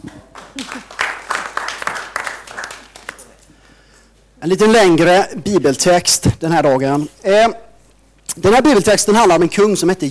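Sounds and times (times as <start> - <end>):
applause: 0.0 - 3.5
speech: 4.4 - 7.6, 8.4 - 10.0.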